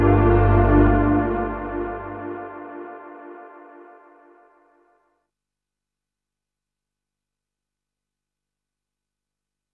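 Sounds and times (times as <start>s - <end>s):
synth pad with realtime knob changes: 0.0s - 4.5s.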